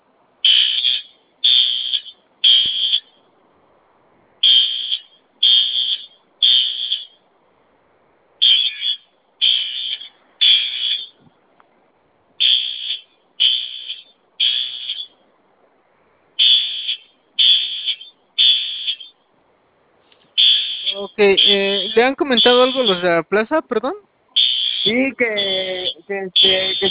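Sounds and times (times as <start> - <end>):
alarm siren beeping: 0.4 - 3.3, 4.4 - 7.2, 8.4 - 11.2, 12.4 - 15.2, 16.4 - 19.2, 20.4 - 23.1, 24.4 - 26.8
speech: 21.2 - 24.1, 24.9 - 26.8.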